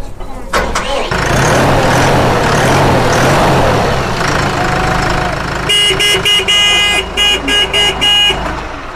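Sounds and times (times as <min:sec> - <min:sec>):
tractor engine starting and running: 0:00.2 - 0:08.9.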